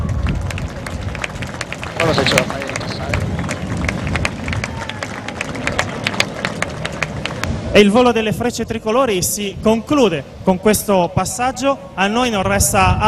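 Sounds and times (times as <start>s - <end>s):
crowd clapping: 0.0s - 8.4s
murmuring voices: 1.8s - 7.4s
speech: 2.1s - 2.6s, 7.8s - 13.0s.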